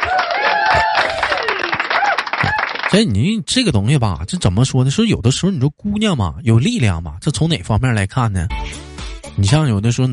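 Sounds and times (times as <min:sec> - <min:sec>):
applause: 0:00.0 - 0:03.1
speech: 0:02.9 - 0:10.1.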